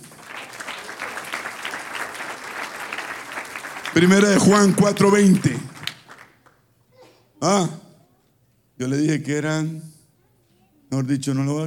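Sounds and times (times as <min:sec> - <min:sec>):
audience applause: 0:00.0 - 0:06.6
speech: 0:04.0 - 0:05.7, 0:07.5 - 0:07.8, 0:08.8 - 0:09.9, 0:10.9 - 0:11.6.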